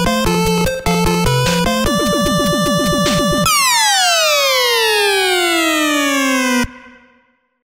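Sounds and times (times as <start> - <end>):
soundtrack music: 0.1 - 7.2.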